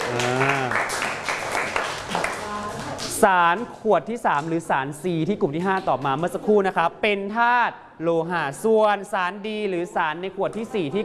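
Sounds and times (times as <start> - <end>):
applause for a group: 0.0 - 3.2
speech: 3.2 - 11.0.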